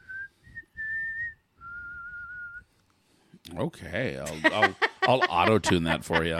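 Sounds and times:
person whistling a tune: 0:00.0 - 0:02.7
speech: 0:03.6 - 0:06.3
laughter: 0:04.3 - 0:06.3.

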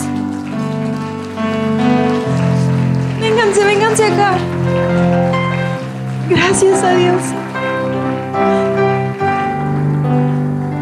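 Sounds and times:
audience applause: 0:00.0 - 0:10.8
speech: 0:04.0 - 0:05.3, 0:06.3 - 0:07.4.

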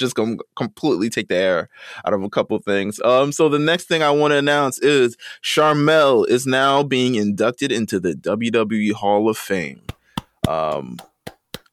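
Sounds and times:
speech: 0:00.0 - 0:11.1
hands clapping: 0:09.8 - 0:11.7.

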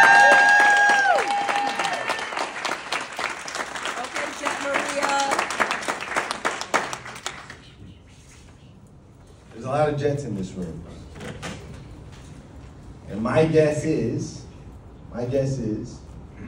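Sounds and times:
whoops and cheers: 0:00.0 - 0:02.5
crowd applauding: 0:00.0 - 0:07.7
speech: 0:09.9 - 0:11.0, 0:13.2 - 0:14.4, 0:15.2 - 0:16.0.

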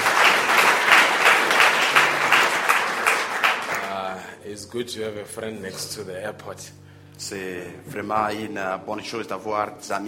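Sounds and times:
round of applause: 0:00.0 - 0:04.1
speech: 0:04.7 - 0:10.0.

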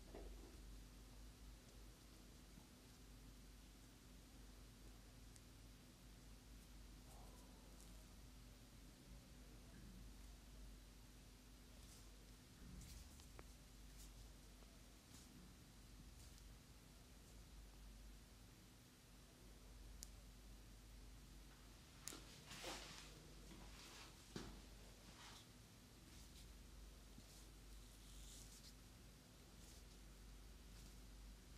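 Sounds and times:
steady low hiss: 0:00.0 - 0:31.5
head back and neck massage rubbing and brushing strokes: 0:22.1 - 0:24.4, 0:25.0 - 0:31.1.

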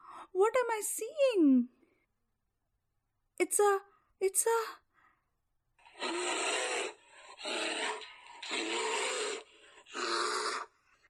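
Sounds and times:
speech: 0:00.4 - 0:01.8, 0:03.4 - 0:04.8, 0:06.0 - 0:06.6, 0:07.4 - 0:09.0
bear growling: 0:05.8 - 0:11.0.

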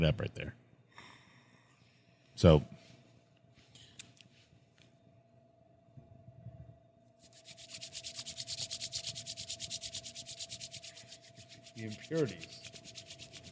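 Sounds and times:
speech: 0:00.0 - 0:00.6, 0:02.4 - 0:02.8, 0:11.8 - 0:12.5
hands rubbing together with beer on the fingers: 0:07.2 - 0:13.5.

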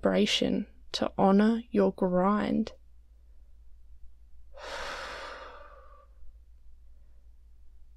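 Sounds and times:
speech: 0:00.0 - 0:02.8, 0:04.6 - 0:04.9
quiet hiss: 0:02.7 - 0:07.9
slow inhale during a guided meditation: 0:04.5 - 0:06.2.

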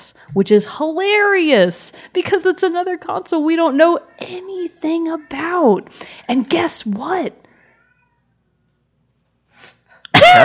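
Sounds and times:
speech: 0:00.2 - 0:07.4, 0:10.2 - 0:10.4
cat howling: 0:07.5 - 0:08.6.

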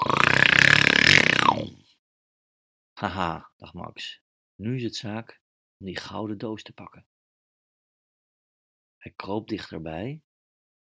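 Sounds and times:
person imitating a loud rasping snore: 0:00.0 - 0:01.9
speech: 0:03.0 - 0:07.1, 0:09.0 - 0:10.3.

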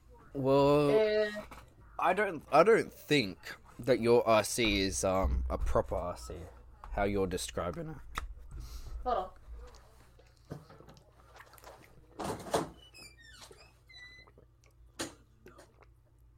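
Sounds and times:
speech: 0:00.4 - 0:01.0, 0:02.0 - 0:08.2, 0:09.0 - 0:09.4
soft knocks and thumps of a door: 0:04.6 - 0:07.0
door being opened very slowly, creaking: 0:12.3 - 0:14.4.

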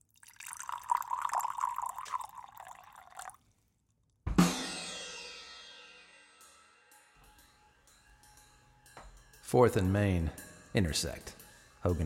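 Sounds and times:
liquid poured into a glass: 0:00.0 - 0:03.5
speech: 0:09.5 - 0:12.0.

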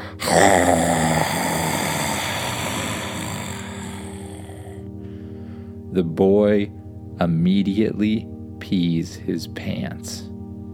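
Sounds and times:
grizzly bear roaring: 0:00.0 - 0:04.8
speech: 0:06.0 - 0:10.3.

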